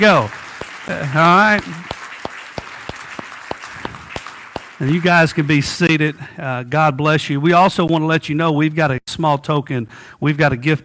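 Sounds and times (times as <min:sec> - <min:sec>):
speech: 0:00.0 - 0:01.9, 0:04.8 - 0:10.8
church audience applause: 0:00.0 - 0:06.2.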